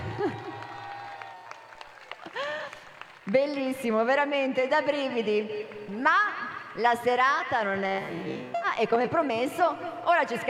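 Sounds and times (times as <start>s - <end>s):
high sliding whistles and cheers: 0.0s - 2.0s
audience applause: 0.0s - 3.3s
speech: 3.3s - 10.4s.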